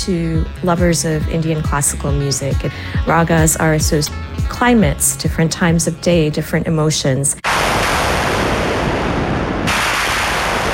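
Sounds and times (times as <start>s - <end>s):
speech: 0.0s - 7.7s
synthesized thunder sounds: 7.4s - 10.7s.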